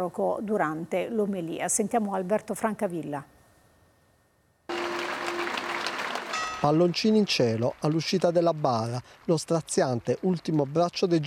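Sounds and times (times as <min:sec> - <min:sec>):
speech: 0:00.0 - 0:03.4, 0:06.6 - 0:11.2
long applause from hundreds of mourners: 0:04.7 - 0:11.2.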